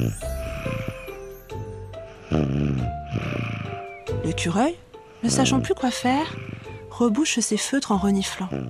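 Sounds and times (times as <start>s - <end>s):
speech: 0.0s - 0.8s, 4.3s - 8.6s
exaggerated cartoonish snoring: 0.0s - 1.2s, 2.2s - 3.9s, 5.2s - 6.9s.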